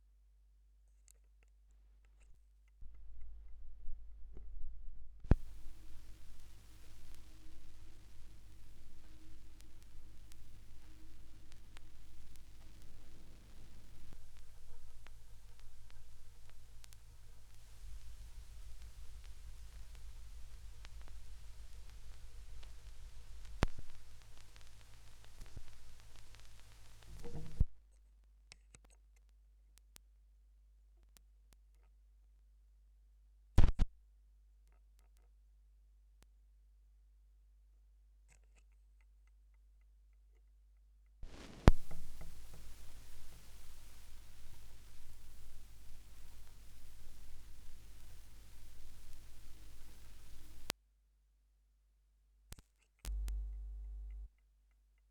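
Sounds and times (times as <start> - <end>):
vinyl record noise: 2.8 - 27.8, 33.6 - 33.8, 41.2 - 50.7, 53.1 - 54.3.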